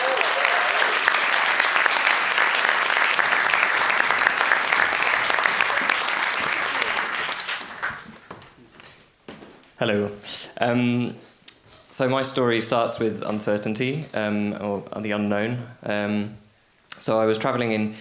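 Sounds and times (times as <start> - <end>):
large audience applause: 0.0 - 8.3
speech: 9.8 - 11.3, 12.0 - 16.4, 17.0 - 18.0.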